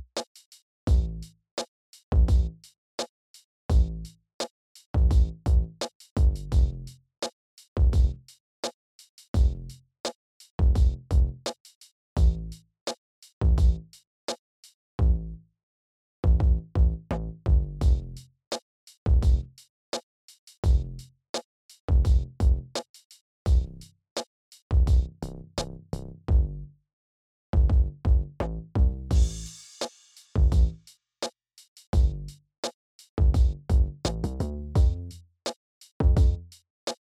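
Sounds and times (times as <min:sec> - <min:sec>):
EQed rhythm bass: 0:00.9 - 0:01.3, 0:02.1 - 0:02.6, 0:03.7 - 0:04.1, 0:05.0 - 0:06.9, 0:07.8 - 0:08.3, 0:09.4 - 0:09.8, 0:10.6 - 0:11.4, 0:12.2 - 0:12.6, 0:13.4 - 0:13.9, 0:15.0 - 0:15.3, 0:16.2 - 0:18.2, 0:19.1 - 0:19.5, 0:20.6 - 0:21.0, 0:21.9 - 0:22.8, 0:23.5 - 0:23.9, 0:24.7 - 0:26.6, 0:27.6 - 0:29.6, 0:30.4 - 0:30.8, 0:32.0 - 0:32.4, 0:33.2 - 0:35.2, 0:36.0 - 0:36.6.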